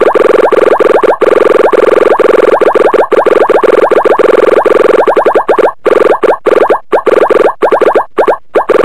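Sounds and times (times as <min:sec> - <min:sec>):
techno beep: 0:00.0 - 0:08.8.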